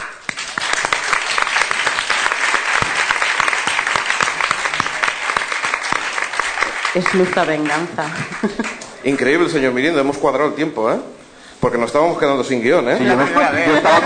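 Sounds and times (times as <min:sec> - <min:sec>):
studio audience applause: 0:00.0 - 0:08.9
speech: 0:06.9 - 0:14.0
laughter: 0:08.0 - 0:08.9, 0:13.0 - 0:14.0.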